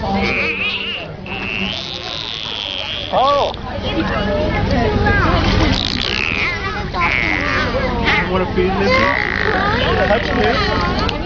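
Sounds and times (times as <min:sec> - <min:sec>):
dolphin sounds: 0:00.2 - 0:04.0, 0:05.3 - 0:08.2, 0:08.9 - 0:11.0
speech: 0:08.4 - 0:11.1.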